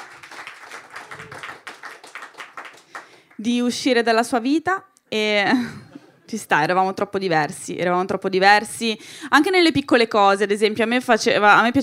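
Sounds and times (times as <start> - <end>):
applause: 0.0 - 3.5
speech: 3.4 - 11.8.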